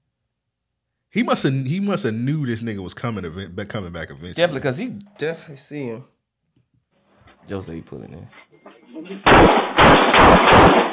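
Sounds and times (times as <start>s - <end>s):
speech: 1.2s - 6.1s, 7.4s - 10.9s
gunshots in a played video: 9.1s - 10.9s.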